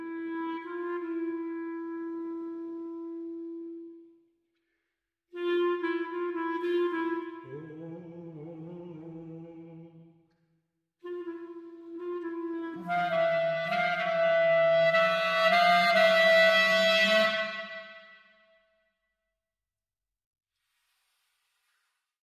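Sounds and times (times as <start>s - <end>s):
clarinet playing a bagatelle: 0.0s - 4.3s, 5.3s - 9.6s, 11.0s - 18.5s.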